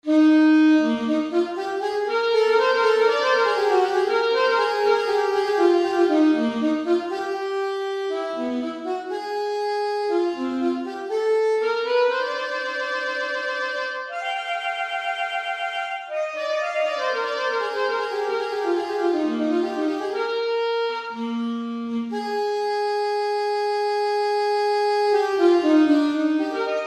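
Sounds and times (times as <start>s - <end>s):
saxophone playing an audition etude: 0.0s - 26.8s.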